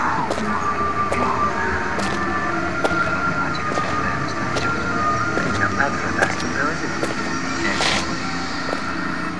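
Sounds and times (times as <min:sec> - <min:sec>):
footstep: 0:00.2 - 0:09.3.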